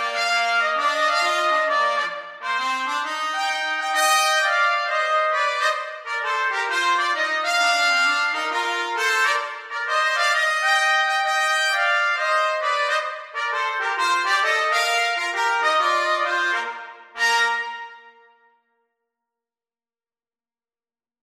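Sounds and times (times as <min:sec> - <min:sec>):
jazz trumpet duet: 0:00.0 - 0:18.4.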